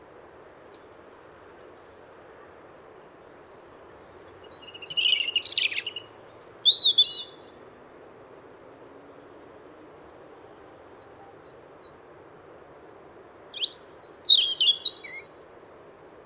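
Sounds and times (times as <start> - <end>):
European robin singing: 3.3 - 9.3, 13.3 - 16.2.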